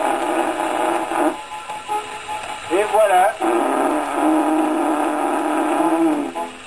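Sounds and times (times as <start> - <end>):
alpaca fart: 0.0 - 1.5, 3.1 - 6.4.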